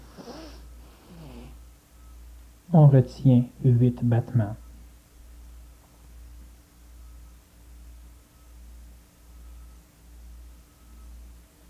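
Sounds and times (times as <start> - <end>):
abdominal and subclavian inhalations during a breathing exercise: 0.0 - 1.8
low steady hum: 0.0 - 11.6
speech: 2.7 - 4.6.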